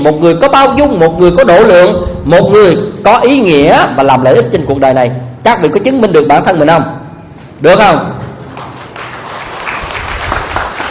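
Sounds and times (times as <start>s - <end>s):
speech: 0.0s - 8.2s
audience clapping at a Vietnamese Buddhist dharma talk: 8.4s - 10.8s.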